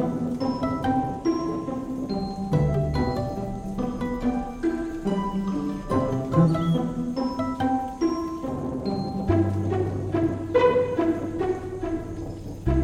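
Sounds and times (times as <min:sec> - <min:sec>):
stringed rain: 0:00.0 - 0:12.8.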